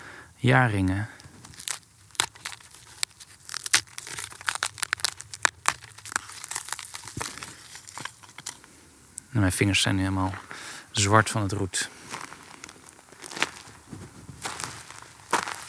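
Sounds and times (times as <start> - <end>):
speech: 0.4 - 1.2, 9.4 - 12.0
piece of tree crumbling: 1.1 - 8.8, 12.1 - 15.6.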